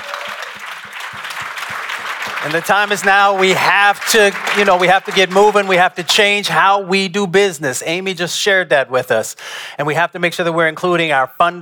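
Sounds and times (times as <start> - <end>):
audience applause: 0.0 - 5.9
speech: 2.4 - 11.5.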